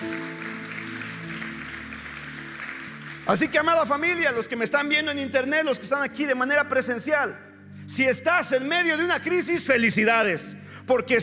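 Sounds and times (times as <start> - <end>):
audience applause: 0.0 - 4.2
speech: 3.3 - 11.2.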